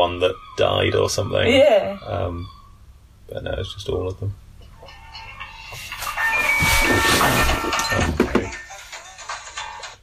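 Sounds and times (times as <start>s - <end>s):
speech: 0.0s - 2.6s, 3.3s - 4.4s, 6.8s - 8.6s
phone ringtone: 4.9s - 10.0s.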